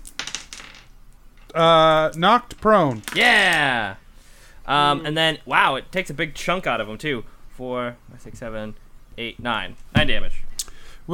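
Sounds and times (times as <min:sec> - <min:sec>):
die clattering across a hard tabletop: 0:00.0 - 0:01.6, 0:02.5 - 0:03.6
speech: 0:01.5 - 0:04.0, 0:04.7 - 0:10.5.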